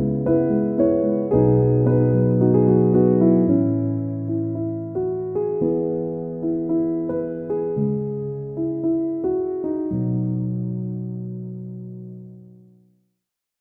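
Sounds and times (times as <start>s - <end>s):
instrumental piano music: 0.0s - 12.8s.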